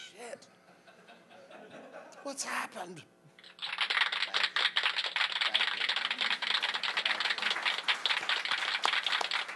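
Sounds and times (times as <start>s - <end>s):
speech: 2.3s - 3.1s
rapid continuous hand clapping: 3.4s - 9.5s.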